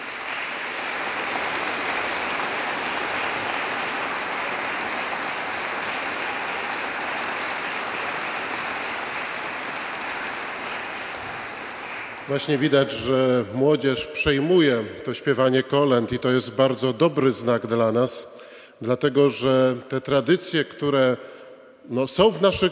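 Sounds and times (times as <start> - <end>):
audience applause for performers: 0.0 - 13.1
speech: 12.3 - 21.3, 21.9 - 22.6.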